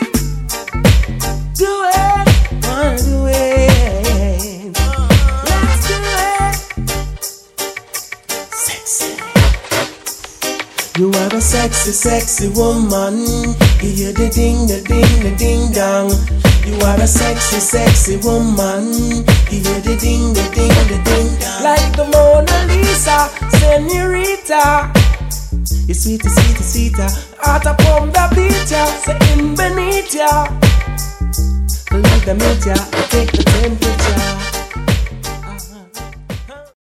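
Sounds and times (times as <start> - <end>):
bass: 0.1 - 7.2, 11.3 - 36.9.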